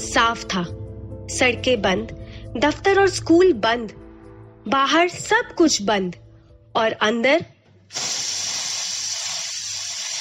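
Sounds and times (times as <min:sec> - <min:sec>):
speech: 0:00.2 - 0:04.0, 0:04.6 - 0:06.2, 0:06.8 - 0:08.4
pressure cooker whistle hissing steam: 0:07.9 - 0:10.1.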